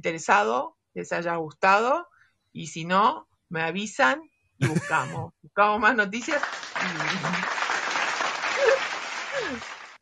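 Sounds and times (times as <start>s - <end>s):
speech: 0.0s - 7.4s
laughter: 4.6s - 5.3s, 6.8s - 9.9s
applause: 6.2s - 10.0s.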